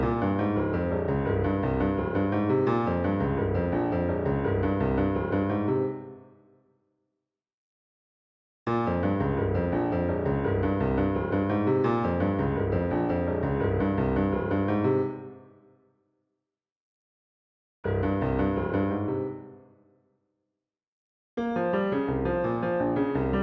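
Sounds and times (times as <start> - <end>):
jazz piano miniature: 0.0 - 6.2, 8.7 - 15.4, 17.9 - 19.6, 21.5 - 23.4.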